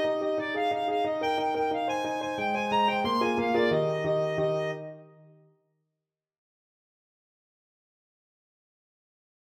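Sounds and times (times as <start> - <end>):
clarinet playing a hornpipe: 0.0 - 5.3.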